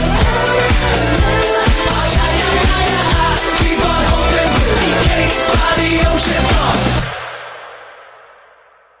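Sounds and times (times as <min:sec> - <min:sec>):
cha cha music at 31 bpm: 0:00.0 - 0:07.2.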